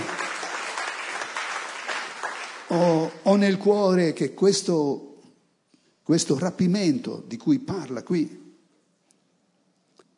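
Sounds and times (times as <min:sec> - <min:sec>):
congregation applauding during a sermon at a worship gathering: 0:00.0 - 0:03.2
speech: 0:02.7 - 0:05.1, 0:06.1 - 0:08.4.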